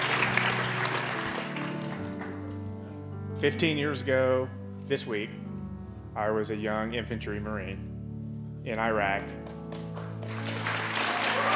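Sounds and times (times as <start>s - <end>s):
audience clapping: 0.0s - 3.0s, 8.8s - 11.5s
speech: 3.4s - 5.5s, 6.2s - 7.9s, 8.6s - 9.5s.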